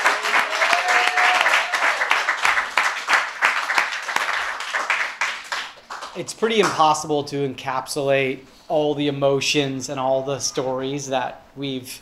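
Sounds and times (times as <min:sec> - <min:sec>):
applause for storytellers: 0:00.0 - 0:06.8
speech: 0:06.2 - 0:12.0.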